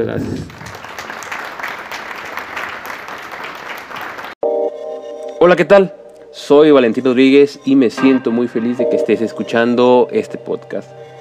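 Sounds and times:
speech: 0.0s - 0.7s, 5.4s - 11.0s
audience applause: 0.5s - 4.4s.

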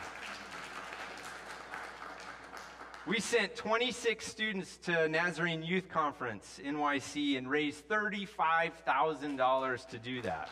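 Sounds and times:
applause: 0.0s - 3.4s, 10.2s - 10.4s
speech: 3.1s - 10.4s.

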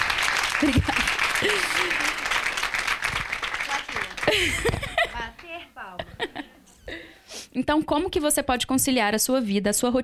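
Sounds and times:
audience applause: 0.0s - 5.6s
speech: 0.6s - 2.2s, 5.4s - 7.0s, 7.6s - 10.0s
laughter: 0.6s - 2.6s, 3.9s - 7.0s.

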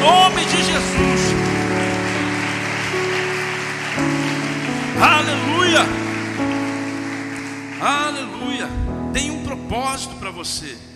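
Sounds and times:
audience applause: 0.0s - 8.6s
speech: 9.2s - 10.9s.

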